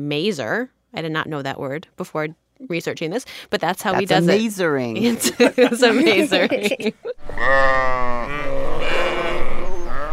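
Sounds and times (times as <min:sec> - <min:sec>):
speech: 0:00.0 - 0:08.5
laughter: 0:05.0 - 0:07.2
sheep bleating: 0:07.4 - 0:10.1.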